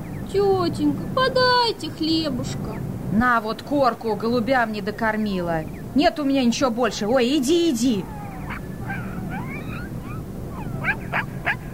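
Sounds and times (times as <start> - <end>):
low steady rumble: 0.0 - 11.7
speech: 0.3 - 8.2
hungry dog whimpering: 8.0 - 11.7.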